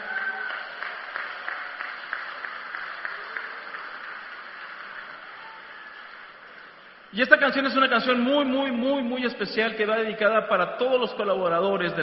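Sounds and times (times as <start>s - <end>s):
crowd clapping: 0.0s - 7.1s
speech: 7.1s - 12.0s.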